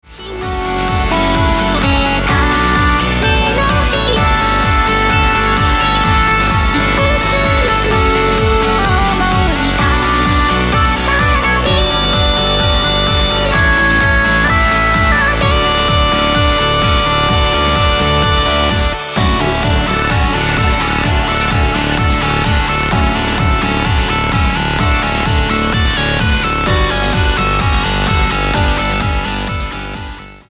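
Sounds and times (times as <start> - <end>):
melody: 0.4 - 30.4.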